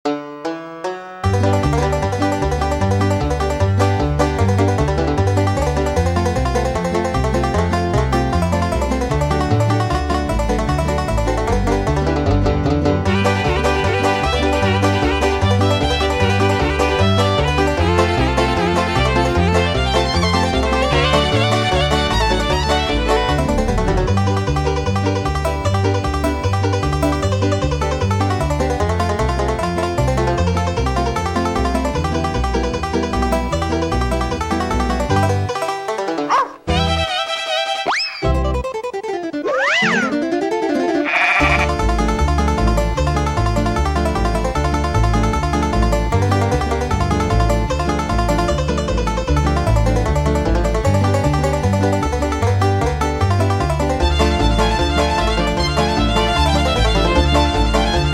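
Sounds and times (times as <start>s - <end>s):
banjo: 0.1s - 58.1s.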